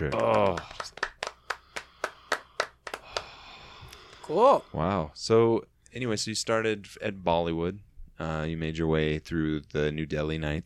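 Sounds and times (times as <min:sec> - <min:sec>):
speech: 0:00.0 - 0:01.0, 0:04.3 - 0:10.6
hand clapping: 0:00.0 - 0:04.3.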